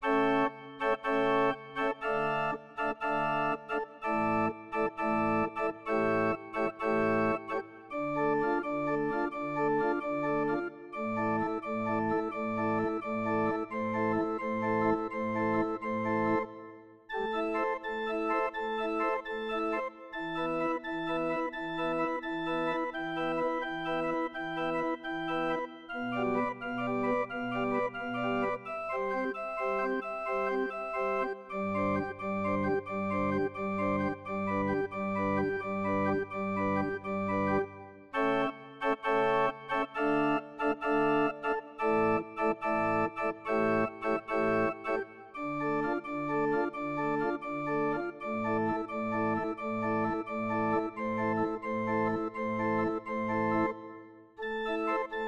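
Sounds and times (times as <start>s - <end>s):
organ concerto: 0.0s - 55.2s.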